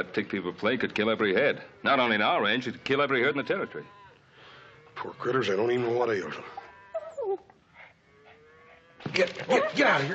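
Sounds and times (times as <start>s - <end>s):
speech: 0.0s - 4.0s, 5.0s - 6.6s, 9.0s - 10.1s
dog on a cattle ranch whining: 6.5s - 8.8s.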